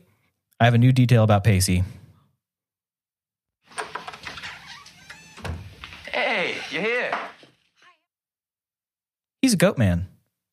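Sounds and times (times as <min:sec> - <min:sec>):
speech: 0:00.6 - 0:02.0, 0:09.5 - 0:10.1
barn door opening: 0:03.7 - 0:07.6.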